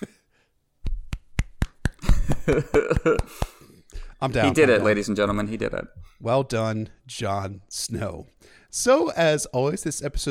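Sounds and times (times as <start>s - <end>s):
people clapping: 0.9s - 3.6s
laughter: 2.0s - 3.5s, 4.3s - 5.1s
speech: 2.5s - 3.5s, 4.2s - 10.2s.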